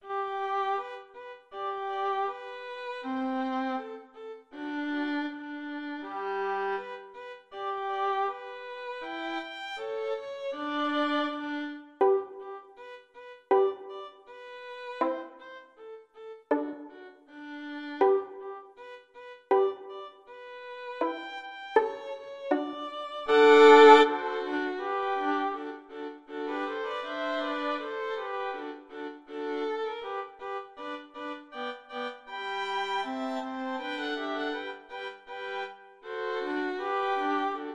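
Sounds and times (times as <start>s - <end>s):
violin trio: 0.0s - 37.7s.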